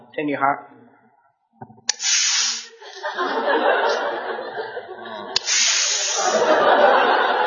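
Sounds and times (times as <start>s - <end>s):
speech: 0.2s - 0.8s, 1.6s - 2.0s, 3.0s - 4.1s
voice imitating annoyed teeth-sucking hiss: 1.9s - 2.9s, 5.4s - 6.5s
laughter: 2.8s - 7.4s.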